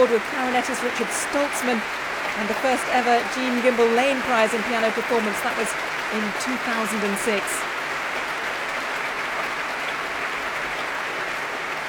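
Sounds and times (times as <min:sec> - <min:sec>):
speech: 0:00.0 - 0:07.7
orchestra members applauding: 0:00.0 - 0:11.8.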